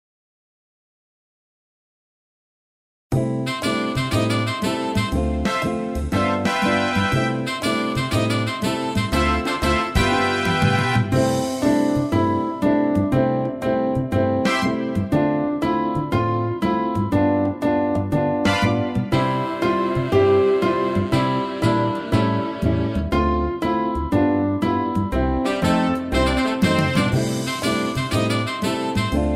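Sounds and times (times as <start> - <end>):
piano playing: 3.1 - 29.3.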